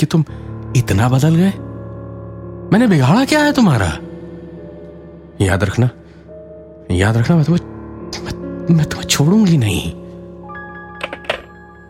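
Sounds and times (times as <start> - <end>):
speech: 0.0 - 1.6, 2.7 - 4.1, 5.4 - 6.0, 6.9 - 7.7, 8.7 - 10.0
telephone receiver slammed down: 11.0 - 11.6.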